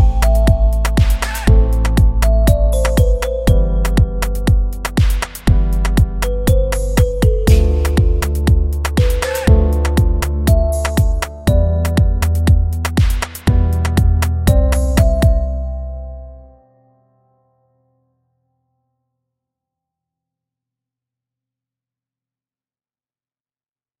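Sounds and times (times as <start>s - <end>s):
trap reggaeton type beat: 0.0s - 15.6s.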